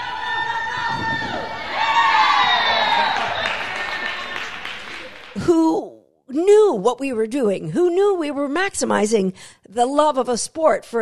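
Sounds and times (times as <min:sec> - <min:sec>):
crowd cheering at dog agility competition: 0:00.0 - 0:05.3
speech: 0:06.9 - 0:11.0.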